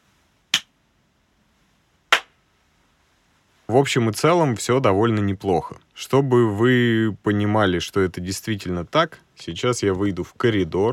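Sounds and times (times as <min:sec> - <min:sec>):
hand clap testing room acoustics: 0:00.5 - 0:00.7, 0:02.1 - 0:02.4
speech: 0:03.7 - 0:10.9.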